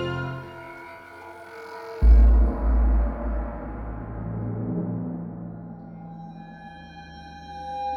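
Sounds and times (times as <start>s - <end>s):
cave ambience: 0.3s - 4.3s.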